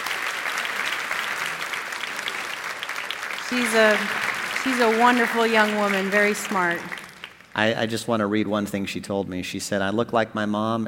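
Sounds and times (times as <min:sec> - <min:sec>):
audience applause: 0:00.0 - 0:07.7
speech: 0:03.5 - 0:07.0, 0:07.6 - 0:10.8.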